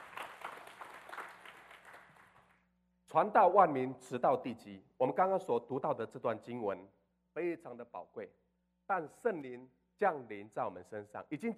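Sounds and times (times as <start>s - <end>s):
crowd, audience clapping hands: 0.0s - 2.6s
speech: 3.1s - 11.5s.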